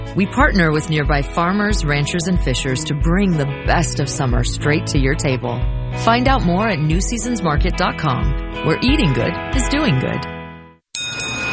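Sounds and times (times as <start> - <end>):
speech: 0.2 - 10.3
bell at Valvoline Instant Oil Change ringing: 11.0 - 11.5.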